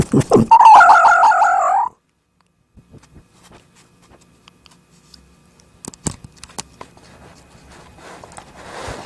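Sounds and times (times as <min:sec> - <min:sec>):
fox wailing cry: 0:00.2 - 0:01.9.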